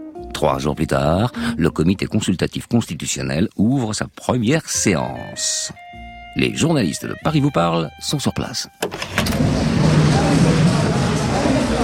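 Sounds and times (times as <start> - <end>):
speech: 0.4 - 10.7
low hum: 9.0 - 11.8
crowd applause greeting General de Gaulle: 9.4 - 11.8.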